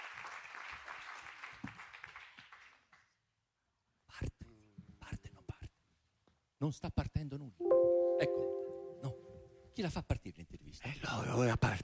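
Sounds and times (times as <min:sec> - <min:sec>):
audience applause: 0:00.0 - 0:02.8
speech: 0:06.6 - 0:08.6, 0:09.8 - 0:11.8.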